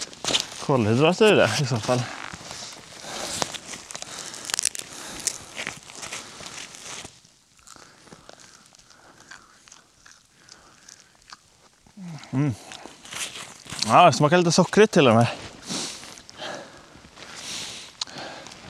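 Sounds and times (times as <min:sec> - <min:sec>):
cattail roots being pulled up and torn from the ground: 0:00.0 - 0:16.4, 0:17.0 - 0:18.6
speech: 0:00.7 - 0:02.2, 0:13.9 - 0:15.4.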